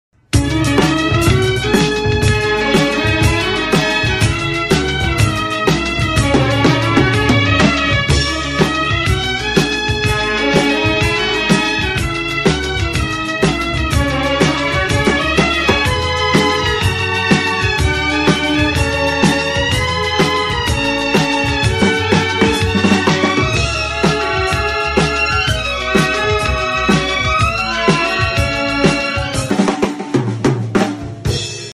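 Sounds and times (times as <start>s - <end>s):
background music drums: 0.2s - 31.7s.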